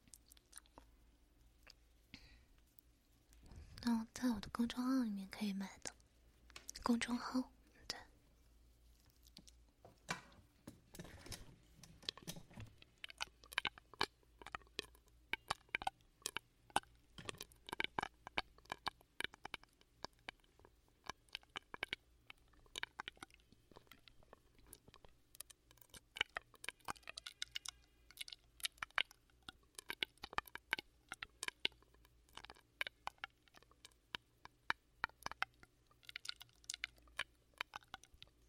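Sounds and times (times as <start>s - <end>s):
ASMR chewing sounds: 0.0s - 0.9s, 9.0s - 9.7s, 11.8s - 38.4s
speech: 3.9s - 6.0s, 6.9s - 7.6s.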